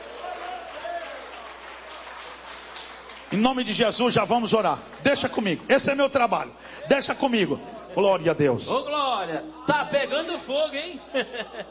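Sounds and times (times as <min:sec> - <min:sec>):
large crowd clapping loudly: 0:00.0 - 0:06.4
speech: 0:03.3 - 0:11.6
laughter: 0:10.1 - 0:11.6.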